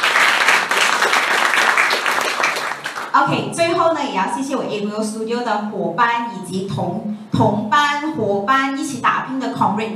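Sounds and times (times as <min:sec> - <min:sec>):
audience applause: 0:00.0 - 0:03.1
speech: 0:03.2 - 0:09.9.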